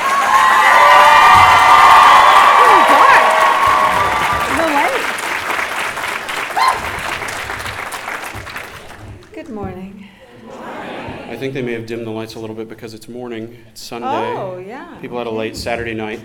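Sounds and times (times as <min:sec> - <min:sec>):
high shouts and whoops: 0:00.0 - 0:05.0, 0:06.5 - 0:07.0
crowd applauding: 0:00.0 - 0:09.3
speech: 0:11.4 - 0:16.2.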